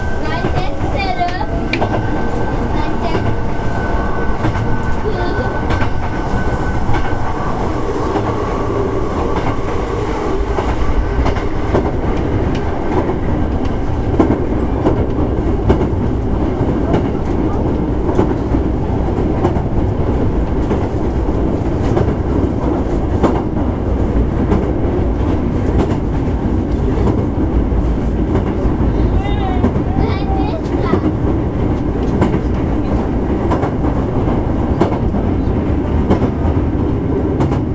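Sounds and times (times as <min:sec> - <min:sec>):
wheels clattering on rails: 0:00.0 - 0:08.5, 0:10.4 - 0:37.7
high whining tone: 0:00.0 - 0:13.6
Hankyu 1000 series train running on the Kobe Line: 0:00.0 - 0:37.7.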